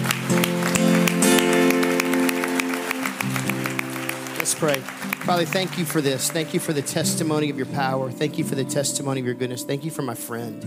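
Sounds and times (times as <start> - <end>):
audience applauding: 0.0 - 7.6
sustained keyboard music: 0.0 - 10.6
speech: 4.6 - 10.6.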